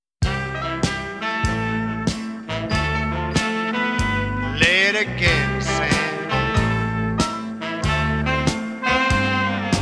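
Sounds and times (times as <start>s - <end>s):
blues medley: 0.2s - 9.7s.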